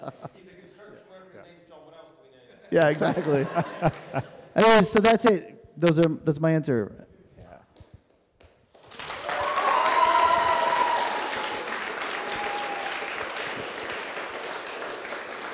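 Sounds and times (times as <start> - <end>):
laughter: 0.0 - 1.6, 2.5 - 4.6
speech: 2.7 - 7.1
audience applause prompted by applause card: 8.7 - 15.5.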